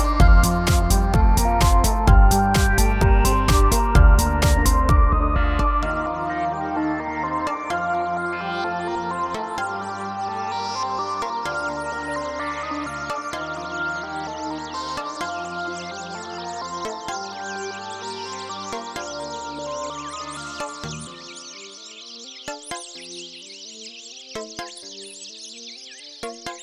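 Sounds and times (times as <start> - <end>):
house music mix: 0.0 - 21.2.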